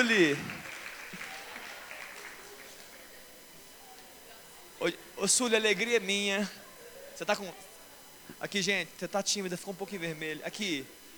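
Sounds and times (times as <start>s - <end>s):
speech: 0.0s - 0.6s, 4.8s - 6.6s, 7.2s - 7.7s, 8.3s - 11.0s
audience applause: 0.0s - 3.3s.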